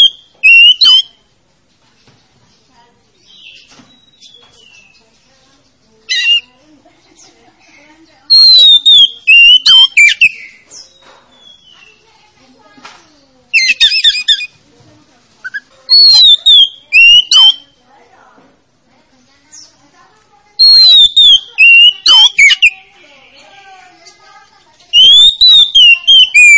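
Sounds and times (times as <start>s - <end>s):
Oriental magpie-robin song of bright whistled phrases: 0.0s - 1.2s, 3.2s - 5.0s, 6.1s - 6.5s, 8.3s - 12.0s, 13.5s - 14.5s, 15.4s - 17.8s, 20.6s - 22.8s, 24.9s - 26.5s.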